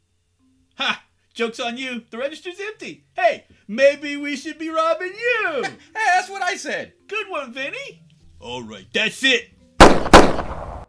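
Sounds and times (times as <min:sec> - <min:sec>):
speech: 0:00.8 - 0:10.5
gunshot fired during a robbery: 0:09.8 - 0:10.8.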